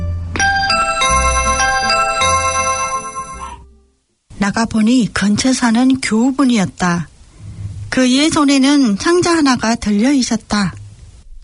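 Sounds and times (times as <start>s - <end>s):
electronic doorbell chime melody: 0.4s - 3.7s
speech: 4.4s - 7.1s, 8.0s - 10.8s.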